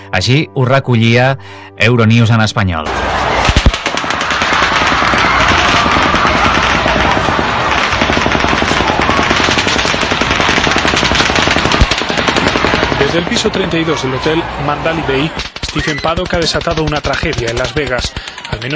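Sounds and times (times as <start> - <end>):
speech: 0.1 - 3.3, 13.2 - 18.7
automatic gunfire into a crowd: 3.4 - 13.5, 15.4 - 18.7.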